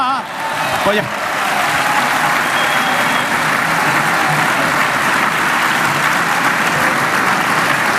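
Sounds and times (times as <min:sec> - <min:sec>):
theatre audience applauding: 0:00.2 - 0:07.9
speech: 0:00.9 - 0:01.2.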